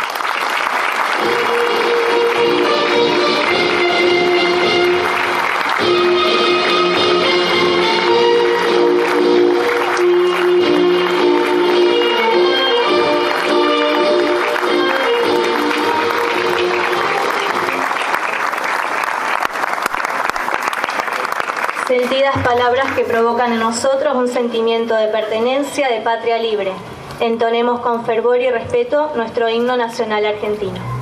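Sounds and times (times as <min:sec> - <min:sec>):
audience applause: 0:00.0 - 0:23.2
speech: 0:23.2 - 0:30.9.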